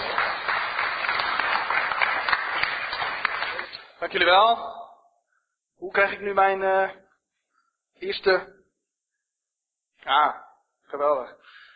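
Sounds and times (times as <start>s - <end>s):
audience applause: 0.0s - 3.9s
speech: 4.1s - 4.8s, 5.8s - 7.0s, 8.0s - 8.6s, 10.0s - 11.6s.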